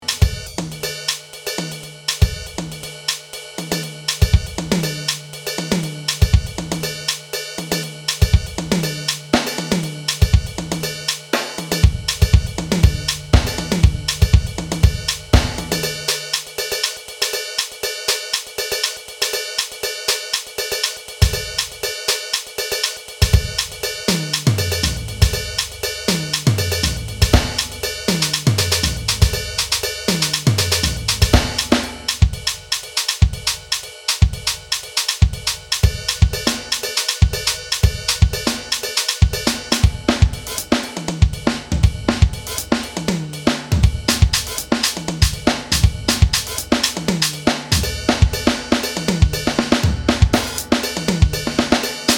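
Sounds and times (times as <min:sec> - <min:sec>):
bass drum: 0:00.0 - 0:00.9, 0:03.7 - 0:16.3, 0:23.2 - 0:52.1.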